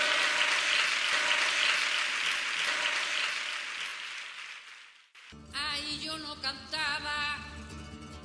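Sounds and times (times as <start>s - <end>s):
audience applause: 0.0s - 5.3s
speech: 6.2s - 7.4s.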